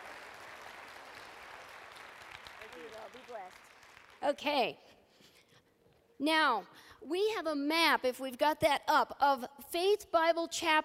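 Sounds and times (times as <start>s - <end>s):
church congregation applause: 0.0s - 4.2s
speech: 2.8s - 5.0s, 6.2s - 10.8s.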